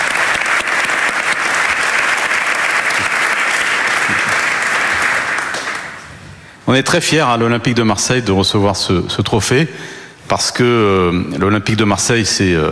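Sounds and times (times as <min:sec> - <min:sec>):
audience applause: 0:00.0 - 0:06.1
speech: 0:06.7 - 0:12.7.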